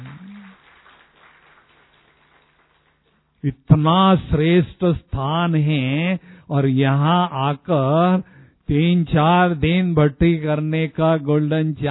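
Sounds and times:
audience clapping: 0.0 - 3.4
speech: 3.4 - 11.8.

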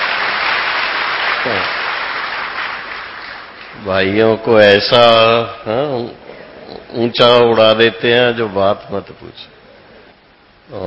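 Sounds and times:
audience applause at an Om Shanti gathering: 0.0 - 3.8
speech: 1.4 - 1.8, 3.8 - 6.3, 6.9 - 9.6, 10.7 - 10.8.

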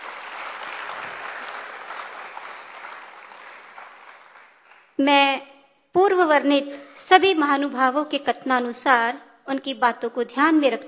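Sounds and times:
audience applause at a youth forum: 0.0 - 4.9
speech: 5.0 - 10.8.

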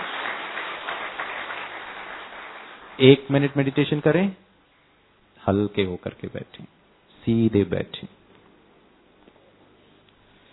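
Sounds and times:
audience clapping loudly at a spiritual gathering: 0.0 - 4.3
speech: 3.0 - 4.4, 5.5 - 8.2.

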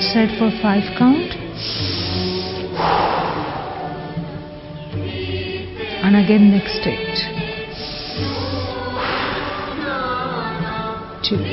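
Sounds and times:
speech: 0.0 - 1.9, 6.1 - 7.1, 11.3 - 11.5
music: 0.0 - 11.5
breathy mouth exhale from a workout breathing routine: 1.6 - 4.5, 7.7 - 9.9.

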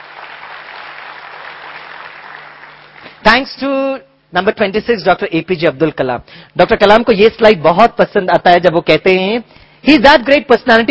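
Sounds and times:
audience applause: 0.0 - 3.1
speech: 3.2 - 10.8.

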